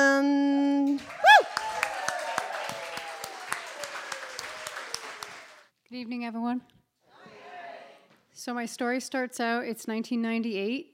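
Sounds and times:
audience applause: 1.0s - 5.7s
speech: 6.0s - 6.8s, 8.4s - 10.9s.

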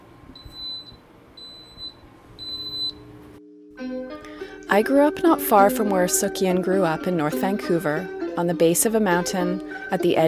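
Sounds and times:
Instant Pot beeping: 0.4s - 3.0s
speech: 4.7s - 10.2s.

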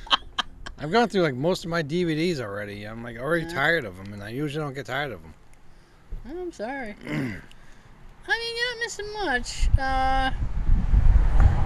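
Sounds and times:
laughter: 0.0s - 1.0s
speech: 0.8s - 5.4s, 6.2s - 7.5s, 8.2s - 10.5s
cars passing outside: 10.4s - 11.6s.

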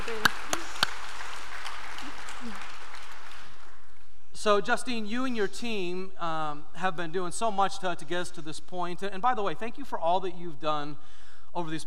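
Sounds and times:
audience applause: 0.0s - 4.0s
speech: 4.4s - 11.8s.

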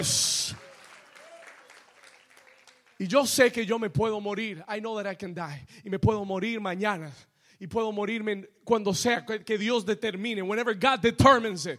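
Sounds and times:
speech: 0.0s - 0.3s, 3.0s - 11.7s
loud audience applause: 0.0s - 3.2s.

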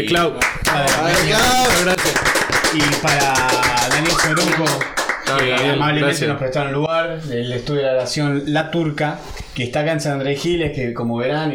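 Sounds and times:
group clapping: 0.0s - 6.4s
speech: 0.0s - 11.5s
voices talking and calling out: 3.8s - 4.9s.

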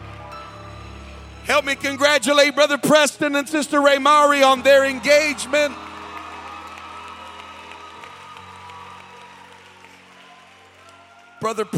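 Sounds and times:
sustained low musical tones: 0.0s - 10.8s
speech: 1.5s - 5.8s, 11.4s - 11.7s
church congregation applauding an engaged couple: 3.7s - 11.7s.

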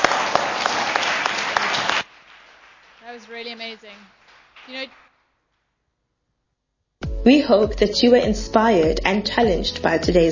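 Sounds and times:
audience applause: 0.0s - 5.1s
speech: 3.2s - 5.0s, 7.2s - 10.3s.

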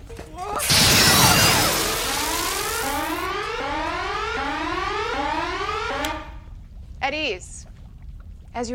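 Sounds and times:
phaser firing: 0.6s - 3.3s
starship alarm: 1.5s - 6.5s
speech: 8.6s - 8.7s.

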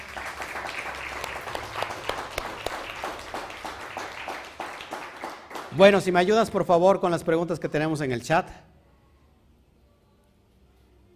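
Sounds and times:
loud audience applause: 0.0s - 6.2s
speech: 5.8s - 8.7s.

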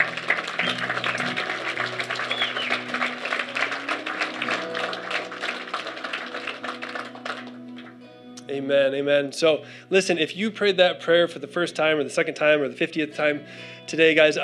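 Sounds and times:
audience applause: 0.0s - 8.1s
speech: 8.6s - 14.4s.

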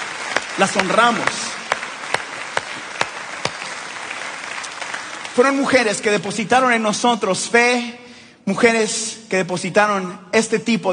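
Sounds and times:
crowd applauding: 0.0s - 6.0s
speech: 0.6s - 1.5s, 5.4s - 10.9s.

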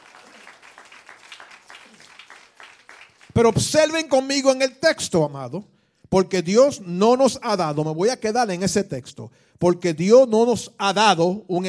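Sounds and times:
audience applause: 0.0s - 3.5s
speech: 3.4s - 11.6s.

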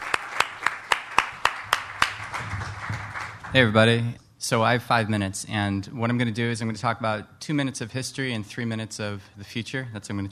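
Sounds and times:
slow hand claps welcoming a speaker at a short talk event: 0.0s - 3.6s
speech: 3.5s - 10.3s.

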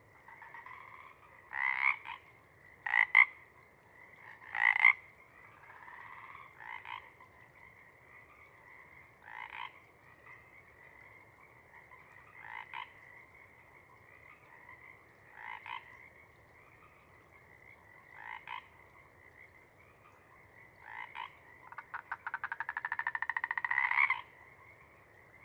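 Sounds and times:
Pacific chorus frogs croaking: 0.0s - 25.4s.

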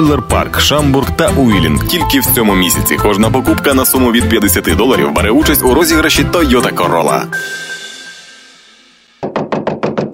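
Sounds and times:
speech: 0.0s - 7.7s
loud knocking: 9.2s - 10.1s.

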